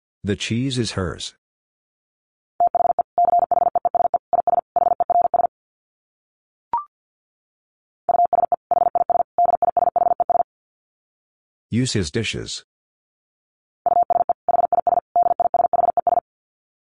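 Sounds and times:
speech: 0.2s - 1.4s, 11.7s - 12.7s
Morse code beeps at 50 wpm: 2.6s - 5.5s, 8.1s - 10.4s, 13.9s - 16.2s.

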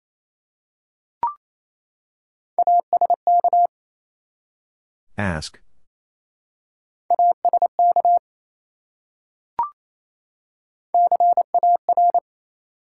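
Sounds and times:
Morse code tones spelling a word: 2.6s - 3.7s, 7.1s - 8.2s, 11.0s - 12.2s
speech: 5.2s - 5.7s.

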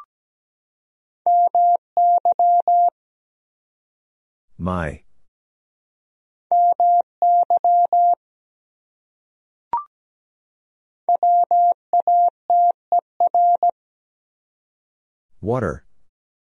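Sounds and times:
Morse code tones at 17 words per minute: 1.3s - 2.9s, 6.5s - 8.2s, 11.1s - 13.7s
speech: 4.6s - 5.1s, 15.4s - 15.8s.

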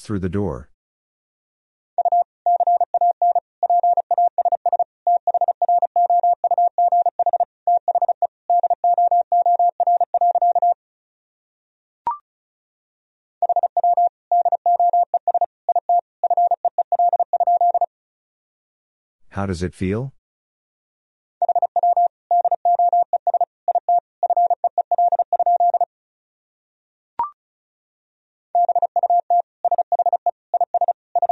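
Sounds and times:
speech: 0.0s - 0.7s, 19.4s - 20.2s
Morse code tone at about 35 words per minute: 2.0s - 10.8s, 13.4s - 17.9s, 21.4s - 25.9s, 28.6s - 31.3s.

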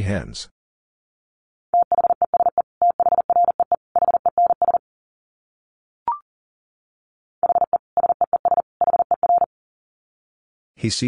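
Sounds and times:
Morse code beeps at 40 words per minute: 1.8s - 4.8s, 7.4s - 9.5s.

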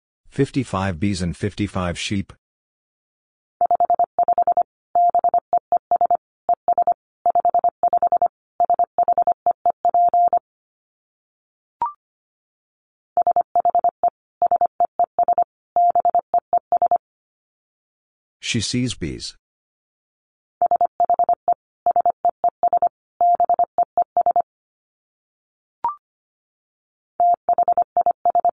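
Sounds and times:
speech: 0.4s - 2.4s, 18.5s - 19.4s
Morse code beeps: 3.6s - 10.4s, 13.2s - 17.0s, 20.6s - 24.4s, 27.2s - 28.5s.

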